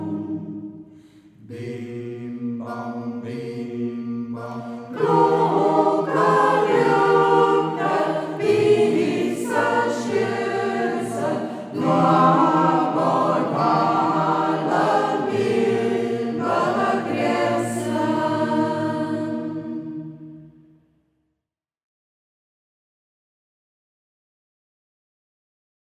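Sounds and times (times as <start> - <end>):
singing circle in local dialect: 0.0 - 20.7.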